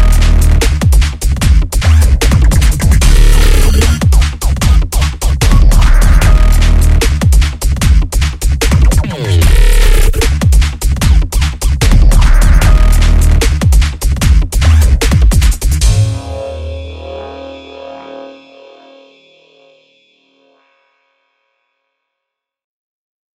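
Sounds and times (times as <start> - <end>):
rumbling bass synth: 0.0 - 19.6.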